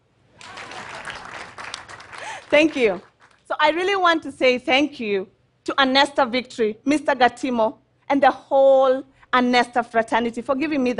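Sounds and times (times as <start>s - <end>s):
audience applause: 0.4s - 3.4s
speech: 2.5s - 10.9s.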